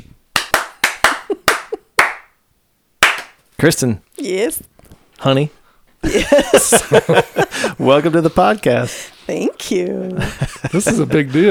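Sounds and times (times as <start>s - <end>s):
studio audience clapping welcoming a guest: 0.0s - 2.4s, 3.0s - 3.4s
laughter: 1.0s - 2.0s, 6.0s - 8.9s, 10.0s - 11.4s
speech: 3.6s - 11.4s.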